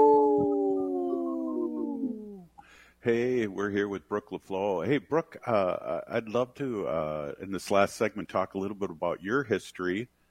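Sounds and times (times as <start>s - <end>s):
wolf howling: 0.0s - 2.4s
speech: 3.0s - 10.2s.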